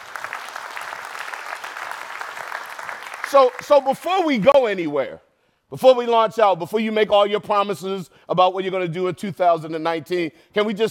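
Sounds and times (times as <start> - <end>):
audience clapping hands: 0.0 - 4.8
speech: 3.3 - 10.8.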